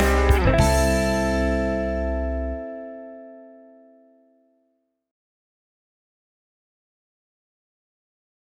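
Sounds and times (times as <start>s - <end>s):
funky rock music: 0.0s - 3.4s.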